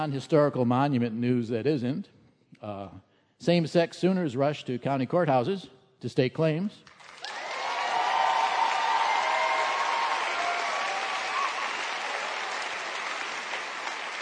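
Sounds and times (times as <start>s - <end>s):
speech: 0.0s - 6.9s
audience applause: 6.9s - 14.2s.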